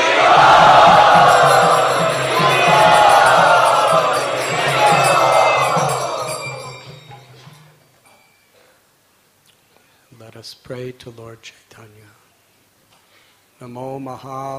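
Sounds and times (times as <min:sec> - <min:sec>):
crowd at a festival gathering chanting: 0:00.0 - 0:07.2
speech: 0:11.0 - 0:12.2, 0:13.6 - 0:14.5.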